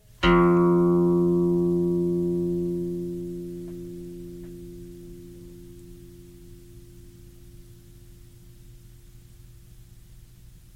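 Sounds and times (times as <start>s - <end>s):
plucked open string: 0.0s - 8.2s.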